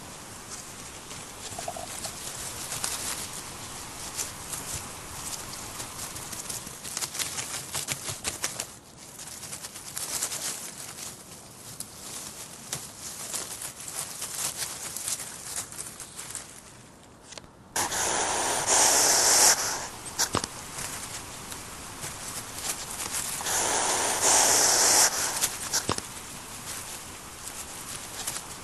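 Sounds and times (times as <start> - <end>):
Erinaceus europaeus: 0.5 - 10.7, 17.8 - 28.6.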